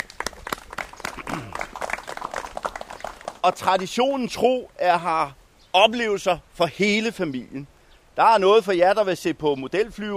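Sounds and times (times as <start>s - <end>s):
audience applause for volunteers: 0.0s - 3.9s
speech: 3.4s - 10.1s.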